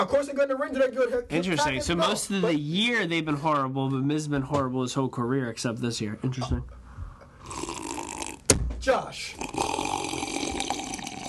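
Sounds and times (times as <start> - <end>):
speech: 0.0 - 6.8, 8.8 - 9.6
person slurping a drink: 7.4 - 8.4, 9.4 - 11.2.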